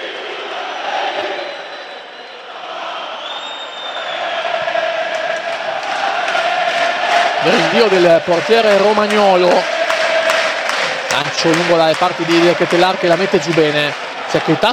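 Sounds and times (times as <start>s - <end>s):
stadium crowd roaring and chanting: 0.0s - 14.7s
faint whistles: 1.1s - 4.5s
speech: 7.4s - 9.8s, 11.1s - 14.7s.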